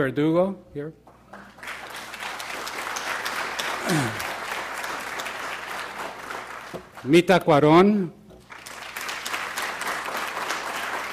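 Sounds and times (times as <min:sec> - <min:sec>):
speech: 0:00.0 - 0:01.0, 0:06.7 - 0:08.2
audience applause: 0:01.3 - 0:07.2, 0:08.5 - 0:11.1.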